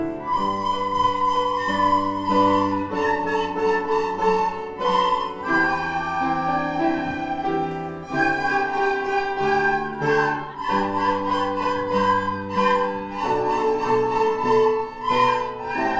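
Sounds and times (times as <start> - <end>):
descant recorders: 0.2 - 15.9.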